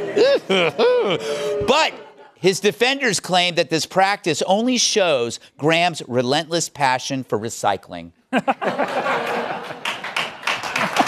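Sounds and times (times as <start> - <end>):
laughter: 0.0 - 2.4, 8.3 - 11.0
speech: 0.2 - 9.8
audience applause: 8.8 - 11.0.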